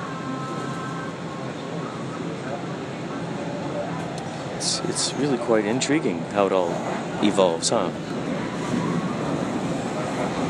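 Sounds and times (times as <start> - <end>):
train interior riding noise: 0.0 - 10.4
speech: 4.6 - 8.3.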